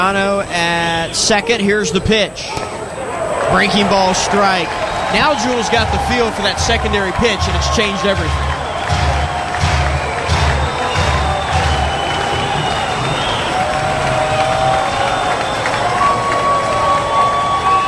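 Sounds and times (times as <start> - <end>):
speech: 0.0 - 2.7, 3.5 - 8.5
baseball stadium crowd roar: 0.0 - 17.8
crowd cheers: 2.5 - 17.8
whistling tones: 4.7 - 17.8
rhythmic low thumps: 5.6 - 14.2.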